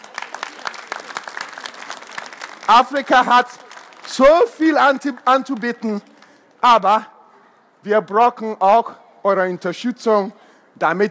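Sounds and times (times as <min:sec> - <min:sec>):
audience applause at a talk by a writer: 0:00.0 - 0:04.4
speech: 0:02.7 - 0:07.1, 0:07.8 - 0:11.0.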